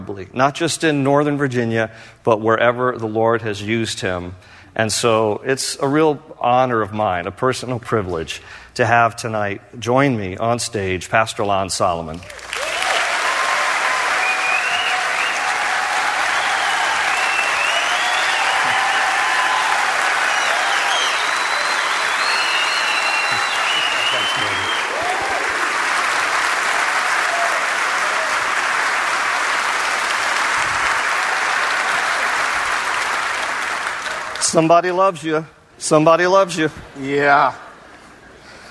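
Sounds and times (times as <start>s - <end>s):
speech: 0.0s - 12.6s, 34.6s - 37.6s
audience applause: 12.3s - 34.5s.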